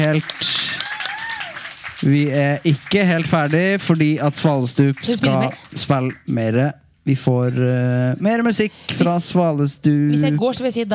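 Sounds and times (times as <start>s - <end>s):
speech: 0.0s - 0.6s, 2.0s - 10.9s
audience clapping at a live music event: 0.0s - 6.4s.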